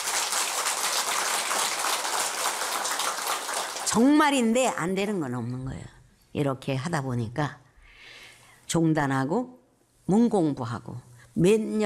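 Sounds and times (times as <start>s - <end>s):
audience clapping: 0.0s - 4.4s
speech: 3.9s - 7.6s, 8.7s - 11.8s.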